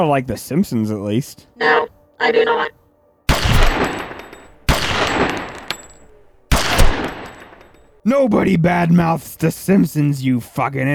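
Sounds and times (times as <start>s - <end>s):
speech: 0.0s - 2.8s, 8.0s - 10.9s
gunshots: 3.3s - 8.0s.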